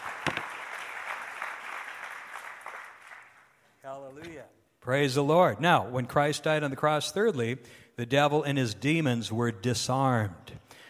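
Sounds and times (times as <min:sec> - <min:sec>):
audience applauding: 0:00.0 - 0:03.6
speech: 0:03.9 - 0:10.6.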